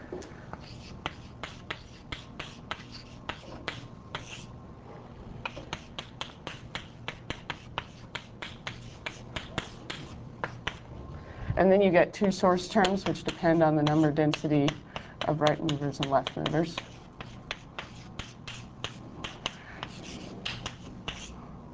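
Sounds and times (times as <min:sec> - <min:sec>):
equation being written on a board: 0:00.6 - 0:04.5, 0:05.4 - 0:10.8, 0:12.8 - 0:21.4
speech: 0:11.6 - 0:16.9.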